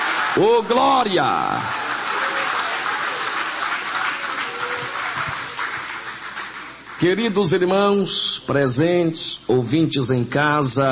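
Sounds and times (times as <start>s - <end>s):
audience applauding: 0.0s - 7.2s
speech: 0.4s - 1.9s, 7.0s - 10.9s.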